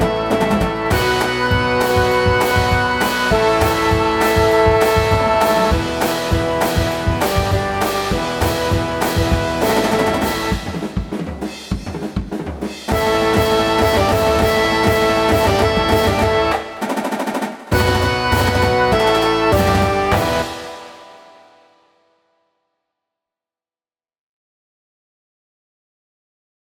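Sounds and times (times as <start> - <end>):
band rumbling: 0.0 - 12.3, 12.9 - 21.2.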